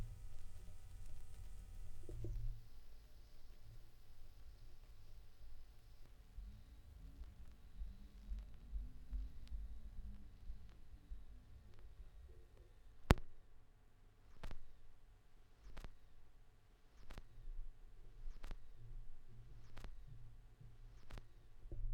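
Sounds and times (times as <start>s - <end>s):
vinyl record noise: 0.0s - 13.4s, 14.3s - 16.3s, 16.9s - 20.1s, 20.9s - 21.6s.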